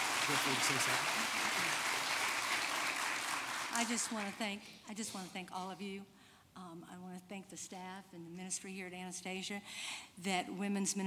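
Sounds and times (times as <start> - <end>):
audience round of applause: 0.0 - 4.4
speech: 0.3 - 1.6, 3.8 - 11.0.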